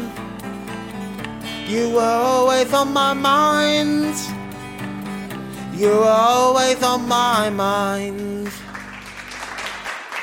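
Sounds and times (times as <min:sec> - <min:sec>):
speech: 0:01.7 - 0:04.4, 0:05.8 - 0:08.6
few people clapping: 0:08.2 - 0:10.2.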